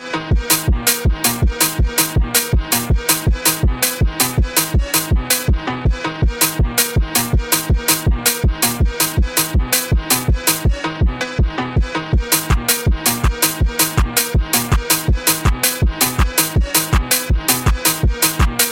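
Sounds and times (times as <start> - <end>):
sped-up phonk remix: 0.1 - 18.7.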